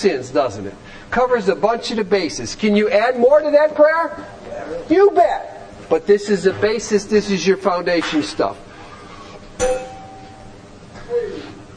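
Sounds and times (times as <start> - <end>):
speech: 0.0 - 8.7, 9.6 - 9.9
bell struck to call for coffee: 9.6 - 10.6.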